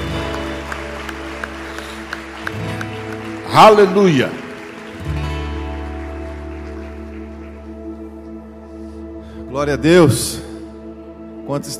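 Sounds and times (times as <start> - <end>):
audience clapping in rhythm: 0.0 - 8.8
speech: 3.6 - 4.4, 9.6 - 10.4, 11.5 - 11.7.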